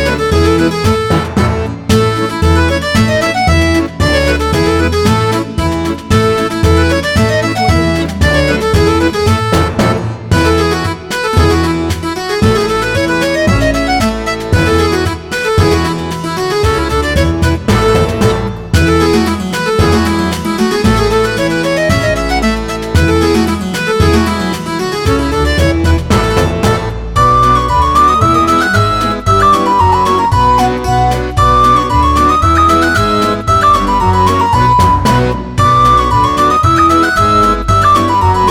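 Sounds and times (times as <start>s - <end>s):
funny cartoon pirate theme music: 0.0s - 38.4s.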